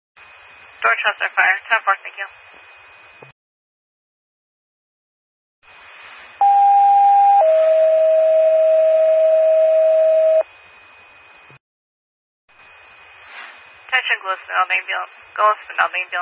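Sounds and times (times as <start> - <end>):
radio static: 0.8 - 2.4, 13.9 - 16.2
speech: 0.8 - 2.6, 14.7 - 16.2
911 paging system two-tone alert: 6.4 - 10.4.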